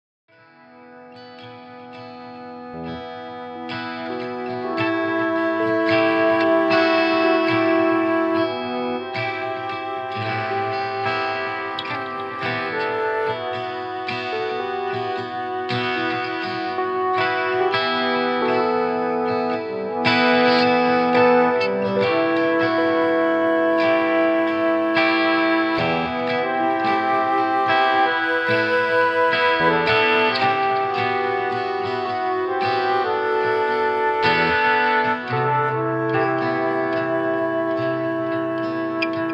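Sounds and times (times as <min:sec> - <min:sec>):
piano: 0:00.3 - 0:39.3.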